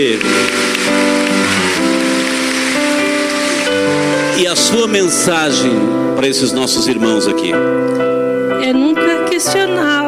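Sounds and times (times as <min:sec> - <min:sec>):
speech: 0:00.0 - 0:00.6, 0:04.4 - 0:10.0
applause: 0:00.0 - 0:05.0.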